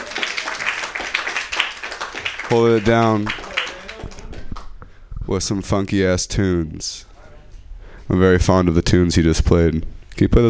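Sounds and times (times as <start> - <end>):
audience applause: 0.0 - 4.6
speech: 2.5 - 3.4, 5.3 - 7.1, 8.1 - 10.4.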